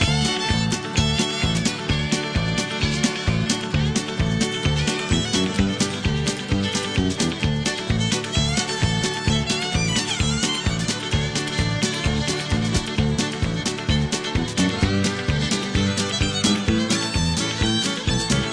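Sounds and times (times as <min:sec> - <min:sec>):
fishing music: 0:00.0 - 0:18.5.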